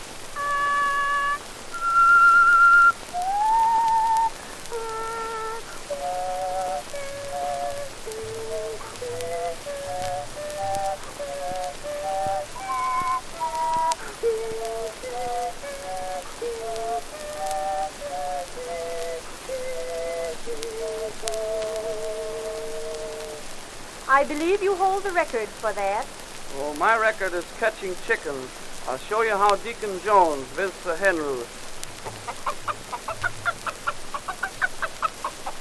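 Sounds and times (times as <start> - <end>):
constant hiss: 0.0 - 35.5
person whistling a tune with three tones at once: 0.4 - 23.0
speech: 24.2 - 31.6.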